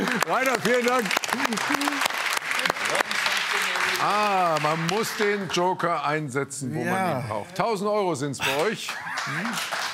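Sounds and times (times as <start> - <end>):
game show studio audience applauding: 0.0 - 5.6, 8.4 - 9.9
speech: 0.3 - 3.1, 4.0 - 9.9.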